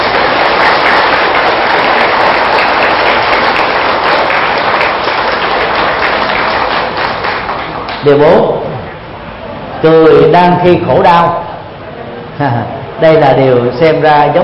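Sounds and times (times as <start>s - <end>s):
loud applause from audience: 0.0s - 8.3s
speech: 8.0s - 8.6s, 9.8s - 11.4s, 12.4s - 14.4s.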